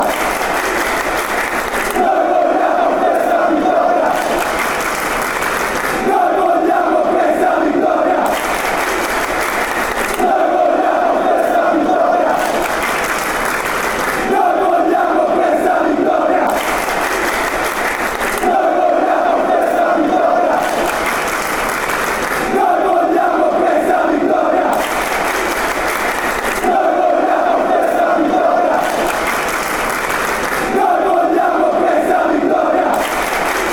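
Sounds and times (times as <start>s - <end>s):
fans chanting in victory: 0.0s - 33.7s.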